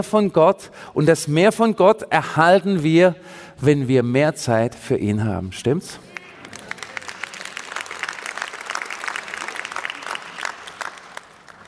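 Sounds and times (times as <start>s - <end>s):
speech: 0.0s - 6.1s
audience applause: 6.1s - 11.6s.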